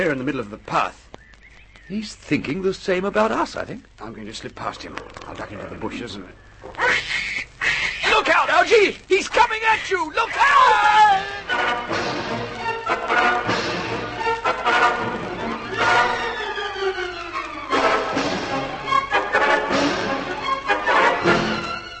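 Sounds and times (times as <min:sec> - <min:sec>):
speech: 0:00.0 - 0:01.1, 0:01.9 - 0:07.2, 0:08.6 - 0:13.6
frantic commotion of harsh noisy bursts: 0:04.2 - 0:21.9
pig squealing loudly: 0:06.6 - 0:08.2.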